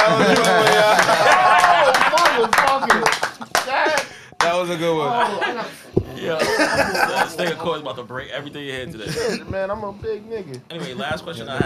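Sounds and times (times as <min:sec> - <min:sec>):
people clapping: 0:00.0 - 0:04.6
people talking and laughing: 0:00.0 - 0:11.6
speech: 0:04.7 - 0:11.6.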